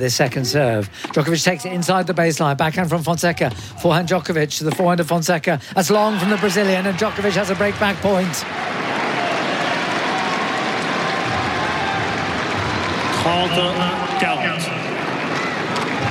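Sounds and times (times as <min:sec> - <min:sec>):
speech: 0:00.0 - 0:08.8, 0:13.4 - 0:14.0
tennis crowd cheering and applauding: 0:05.9 - 0:16.1
crowd shouting and whistling: 0:08.4 - 0:16.1.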